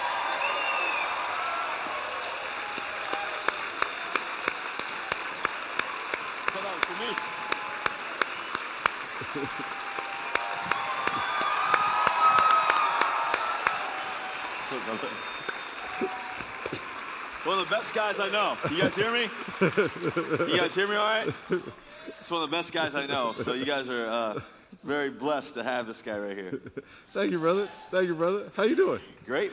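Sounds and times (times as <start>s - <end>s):
audience applause welcoming a two-time Super Bowl-winning quarterback: 0.0s - 21.7s
laughter: 9.1s - 10.1s, 18.3s - 24.6s
speech: 17.7s - 29.5s.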